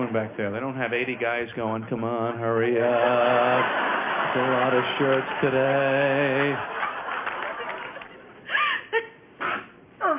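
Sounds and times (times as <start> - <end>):
speech: 0.1 - 6.8
laughter: 2.6 - 9.2
person sneezing: 9.4 - 10.1.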